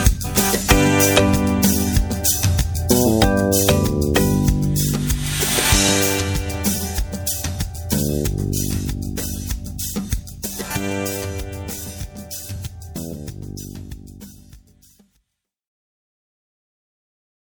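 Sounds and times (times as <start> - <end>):
children's learning song: 0.0 - 13.8.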